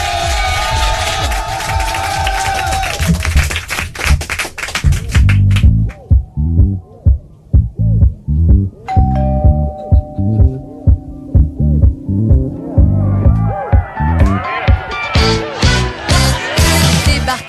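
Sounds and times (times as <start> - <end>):
crowd applause and cheering: 0.0 - 6.2, 10.4 - 17.4
music with a steady beat: 5.1 - 17.4.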